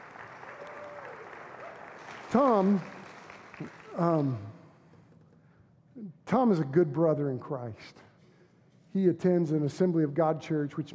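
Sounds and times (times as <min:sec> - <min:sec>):
audience applause greeting a guest: 0:00.0 - 0:04.5
speech: 0:02.3 - 0:03.0, 0:03.6 - 0:04.6, 0:06.0 - 0:08.0, 0:08.9 - 0:10.9.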